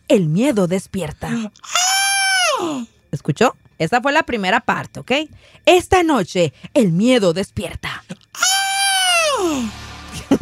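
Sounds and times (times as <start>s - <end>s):
speech: 0.1s - 1.9s, 2.6s - 8.5s, 9.4s - 9.8s
high-pitched scream: 1.6s - 2.9s, 8.4s - 9.8s.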